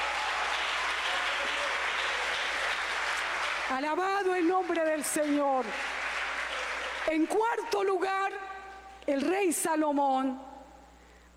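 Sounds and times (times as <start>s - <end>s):
audience applause: 0.0s - 7.2s
speech: 3.7s - 6.0s, 7.1s - 8.4s, 9.0s - 10.5s.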